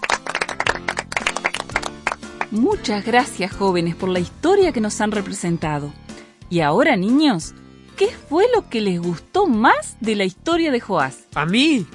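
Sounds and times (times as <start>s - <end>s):
children clapping for the actors after a Bible story performance: 0.0s - 2.6s
speech: 2.5s - 11.9s.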